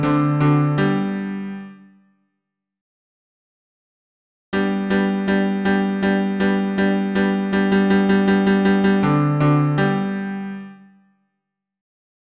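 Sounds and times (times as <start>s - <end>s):
piano bass accompaniment: 0.0s - 1.8s, 4.6s - 10.7s.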